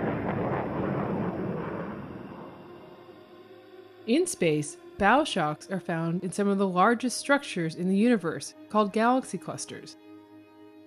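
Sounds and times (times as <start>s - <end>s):
sonic boom from supersonic plane: 0.0s - 3.4s
speech: 4.0s - 10.0s.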